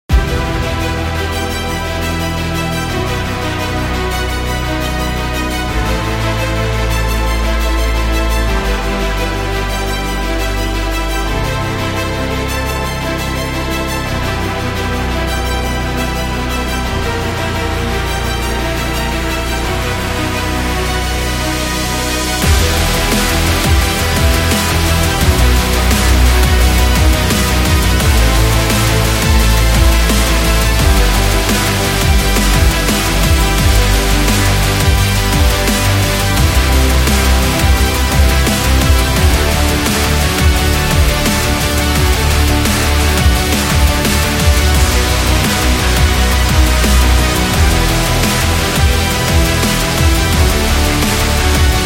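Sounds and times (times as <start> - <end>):
heroic music: 0.0 - 51.8.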